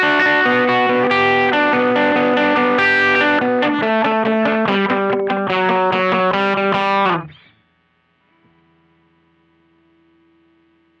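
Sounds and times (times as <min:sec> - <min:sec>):
slow riff: 0:00.0 - 0:07.5.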